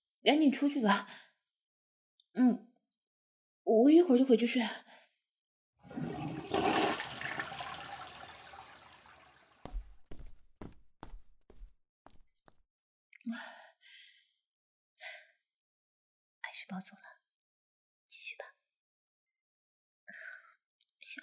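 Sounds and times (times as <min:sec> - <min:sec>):
speech: 0:00.2 - 0:01.2, 0:02.4 - 0:02.7, 0:03.7 - 0:04.9, 0:13.3 - 0:13.5, 0:16.7 - 0:17.1
toilet flushing: 0:05.8 - 0:09.7.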